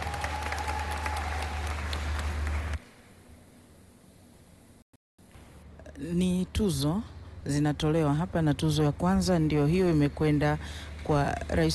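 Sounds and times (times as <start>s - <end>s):
audience clapping at a Tanzanian awards ceremony: 0.0s - 2.8s
speech: 6.0s - 11.7s.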